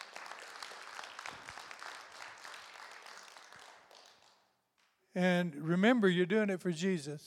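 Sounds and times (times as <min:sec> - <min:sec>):
audience applause: 0:00.0 - 0:04.4
speech: 0:05.2 - 0:07.2.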